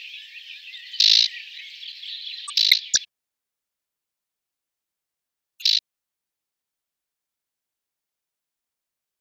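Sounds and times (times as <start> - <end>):
marsh warbler song: 0.0 - 3.1, 5.6 - 5.8.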